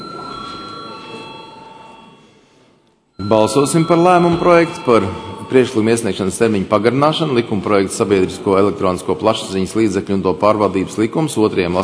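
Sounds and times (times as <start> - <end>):
parliament chamber electronic bell calling a vote: 0.0 - 7.6
speech: 3.3 - 11.8.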